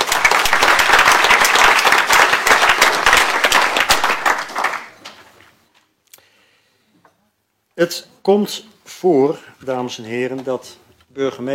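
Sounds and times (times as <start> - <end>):
audience applause: 0.0 - 5.2
speech: 7.8 - 11.5.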